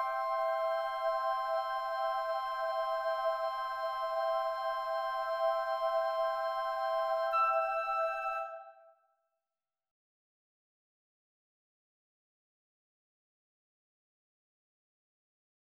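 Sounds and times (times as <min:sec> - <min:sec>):
choir: 0:00.0 - 0:08.7
flute: 0:00.0 - 0:09.1.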